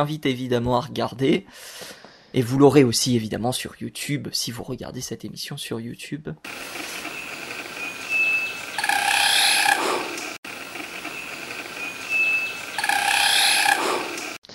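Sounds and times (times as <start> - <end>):
speech: 0.0 - 7.1
Rufous-sided Broadbill wing display whirring buzz: 6.5 - 14.4.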